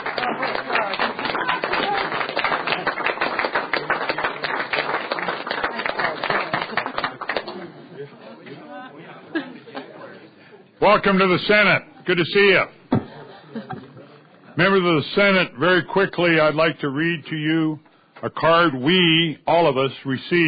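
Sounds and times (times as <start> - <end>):
students and senators clapping: 0.0 - 7.9
laughter: 5.8 - 10.4, 13.0 - 14.4
speech: 10.9 - 12.8, 14.6 - 20.4.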